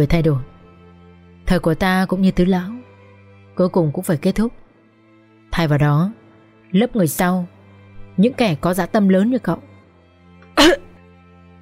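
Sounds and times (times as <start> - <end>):
speech: 0.0 - 0.5, 1.5 - 2.8, 3.6 - 4.6, 5.5 - 7.6, 8.2 - 9.7
old man coughing: 10.6 - 11.0.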